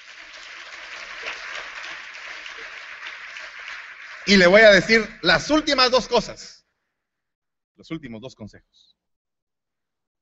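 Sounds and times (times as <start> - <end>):
audience clapping: 0.0 - 6.4
speech: 4.2 - 6.6, 7.8 - 9.0.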